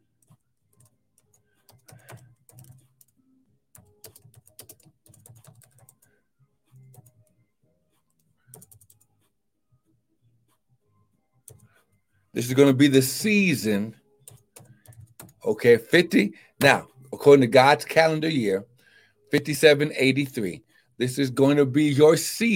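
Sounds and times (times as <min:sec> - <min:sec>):
keyboard typing: 0:00.0 - 0:06.1, 0:06.7 - 0:07.2, 0:08.0 - 0:09.3, 0:11.4 - 0:11.7, 0:14.2 - 0:15.4
speech: 0:12.4 - 0:14.0, 0:15.5 - 0:18.7, 0:19.3 - 0:22.5.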